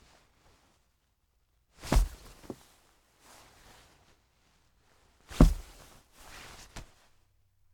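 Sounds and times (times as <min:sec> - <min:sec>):
clothes hitting wall: 0:01.8 - 0:02.6, 0:05.3 - 0:05.8.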